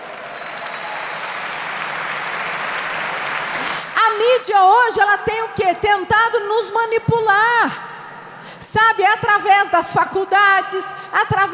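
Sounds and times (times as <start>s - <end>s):
audience applause: 0.0s - 4.0s
speech: 4.1s - 7.9s, 8.7s - 11.5s.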